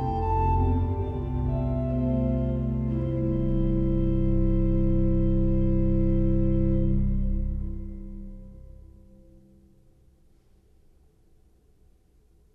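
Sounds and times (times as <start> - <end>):
pipe organ with Holfluit, Subbas and Bourdon stops: 0.0 - 9.4.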